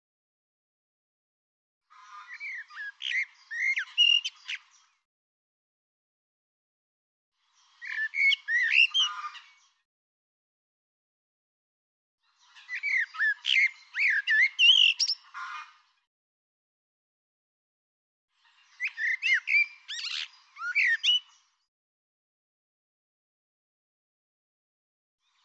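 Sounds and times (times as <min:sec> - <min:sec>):
bird song of whistled notes with twittering: 0:01.9 - 0:05.0, 0:07.5 - 0:09.8, 0:12.2 - 0:16.1, 0:18.4 - 0:21.7.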